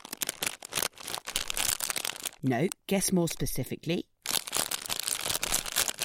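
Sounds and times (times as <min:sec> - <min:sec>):
crisp packet rustling and crinkling: 0:00.0 - 0:02.7, 0:04.2 - 0:06.0
speech: 0:02.4 - 0:04.1.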